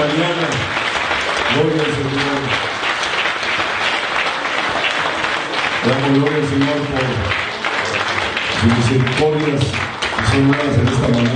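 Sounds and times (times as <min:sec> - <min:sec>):
congregation applause during a church service: 0:00.0 - 0:11.3
speech: 0:01.5 - 0:02.2, 0:08.6 - 0:11.3.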